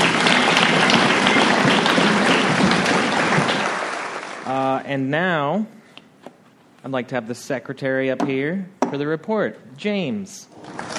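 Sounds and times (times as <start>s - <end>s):
audience round of applause: 0.0s - 4.8s, 10.6s - 10.9s
speech: 4.9s - 5.8s, 6.8s - 10.8s.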